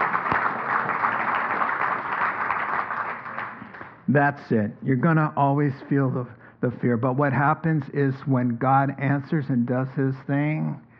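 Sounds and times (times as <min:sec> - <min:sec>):
audience applause: 0:00.0 - 0:04.0
speech: 0:04.1 - 0:10.9.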